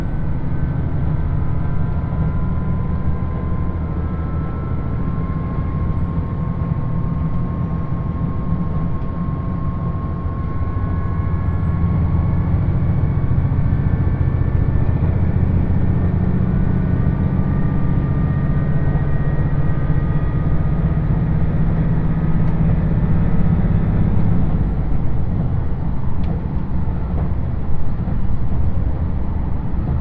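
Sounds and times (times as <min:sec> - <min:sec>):
diesel limited express train engine drone on the Yosan Line: 0:00.0 - 0:30.0
faint tonal whines: 0:00.0 - 0:30.0.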